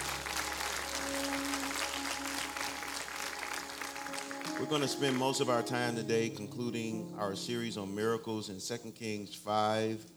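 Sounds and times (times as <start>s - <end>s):
church congregation clapping hands in praise: 0.0s - 6.6s
speech: 4.6s - 10.1s.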